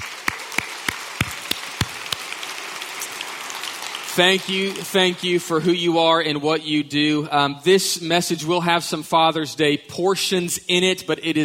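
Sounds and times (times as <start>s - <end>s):
round of applause: 0.0s - 5.9s
speech: 4.2s - 11.4s.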